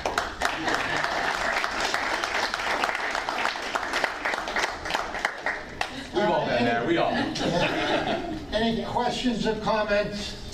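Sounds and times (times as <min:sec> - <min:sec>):
audience applause: 0:00.0 - 0:06.0
laughter: 0:06.2 - 0:08.5
speech: 0:08.7 - 0:10.4.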